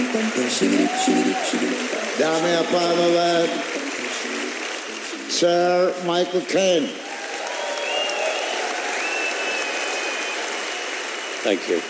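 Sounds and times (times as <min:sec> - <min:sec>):
large audience applauding: 0:00.0 - 0:11.8
speech: 0:00.2 - 0:03.8, 0:05.3 - 0:07.0, 0:11.4 - 0:11.8
faint high whistles: 0:07.6 - 0:10.6.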